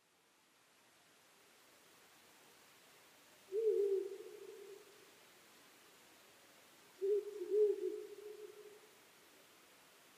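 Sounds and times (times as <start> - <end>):
owl hooting: 3.5 - 4.9, 7.0 - 8.8.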